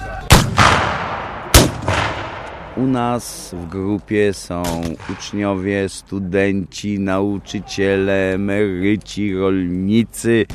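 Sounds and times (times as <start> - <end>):
cannon blasts at a battle reenactment: 0.3 - 2.8
booming burst rolling into rumble: 0.3 - 3.2
speech: 2.8 - 10.5.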